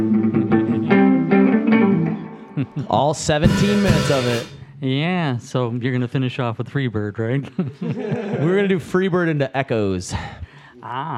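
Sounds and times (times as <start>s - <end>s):
electric guitar being tuned up: 0.0s - 2.8s, 3.4s - 4.8s
laughter: 2.6s - 3.1s, 7.4s - 8.8s
speech: 2.8s - 11.1s.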